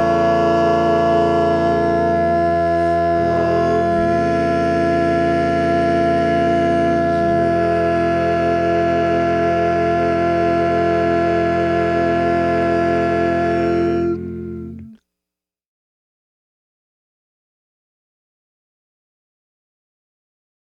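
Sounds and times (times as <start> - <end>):
tenor singing: 0.0 - 15.0.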